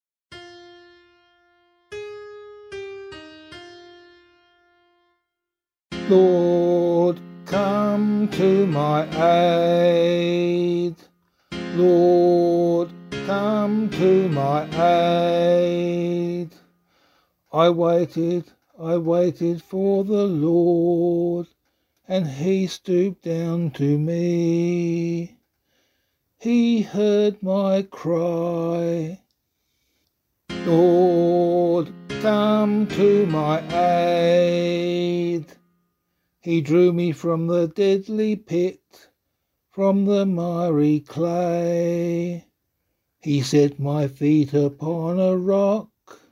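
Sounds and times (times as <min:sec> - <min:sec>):
psalm in C sung by voice: 0:05.9 - 0:16.8, 0:17.5 - 0:25.4, 0:26.4 - 0:29.3, 0:30.5 - 0:35.6, 0:36.4 - 0:39.1, 0:39.7 - 0:42.5, 0:43.2 - 0:46.2.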